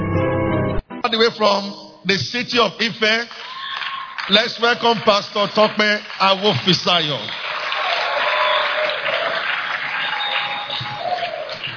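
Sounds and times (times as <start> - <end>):
speech: 1.1 - 3.5, 4.3 - 7.4
audience applause at a religious gathering: 3.1 - 11.7.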